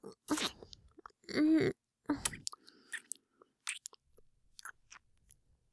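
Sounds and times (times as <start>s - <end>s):
kissing sound: 0.3s - 0.7s, 2.2s - 3.1s.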